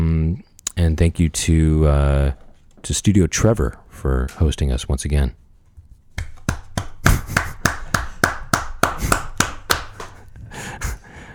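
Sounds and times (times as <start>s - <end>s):
speech: 0.8s - 5.4s
applause: 6.3s - 10.2s.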